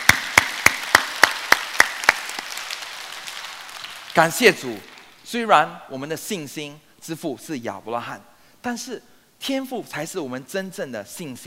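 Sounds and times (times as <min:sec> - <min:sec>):
church congregation clapping in unison to praise God: 0:00.0 - 0:05.2
speech: 0:04.2 - 0:11.4.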